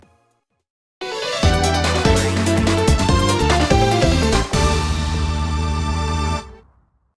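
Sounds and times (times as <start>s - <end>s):
background music: 1.0s - 6.7s.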